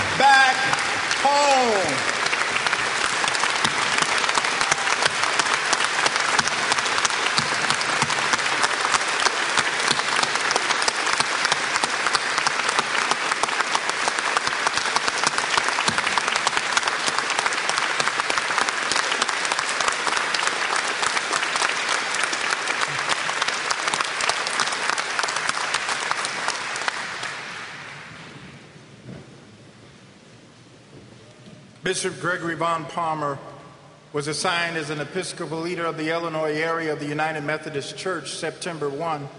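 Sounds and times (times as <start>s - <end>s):
audience applause welcoming a bishop and his wife at an Iowa gathering: 0.0s - 28.4s
speech: 31.9s - 33.5s, 34.1s - 39.3s.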